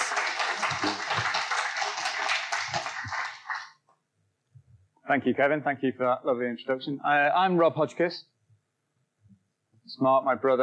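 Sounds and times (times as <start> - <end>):
crowd applause: 0.0 - 3.8
speech: 5.1 - 8.3, 10.0 - 10.6.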